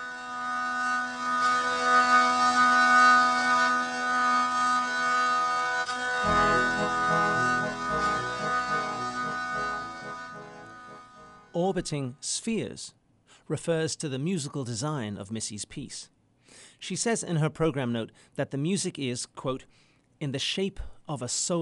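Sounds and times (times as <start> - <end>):
medieval stringed instrument with wheezing drones: 0.0 - 11.8
speech: 11.8 - 16.1, 16.8 - 21.6.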